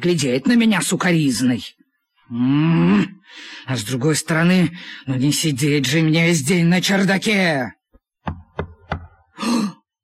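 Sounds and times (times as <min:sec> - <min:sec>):
speech: 0:00.0 - 0:08.4
knocking on a door: 0:08.2 - 0:09.2.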